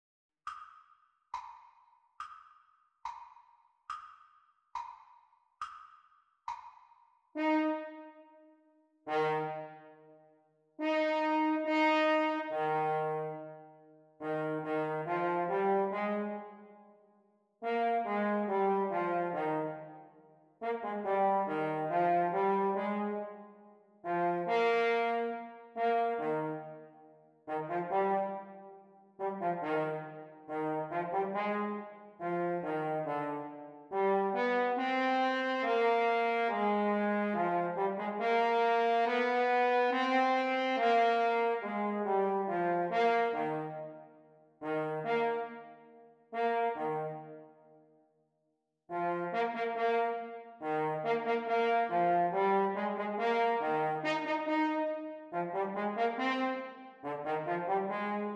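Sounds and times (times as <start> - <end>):
French horn duet playalong practice: 7.4 - 8.1, 9.1 - 9.9, 10.8 - 13.6, 14.2 - 16.6, 17.6 - 19.9, 20.6 - 23.4, 24.0 - 26.8, 27.5 - 44.0, 44.6 - 47.5, 48.9 - 58.3.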